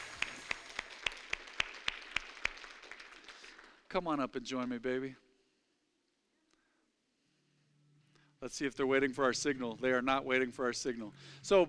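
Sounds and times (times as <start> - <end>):
audience rhythmic clapping: 0.0 - 5.0
faint hum: 0.0 - 11.6
speech: 3.9 - 5.2, 8.4 - 11.6.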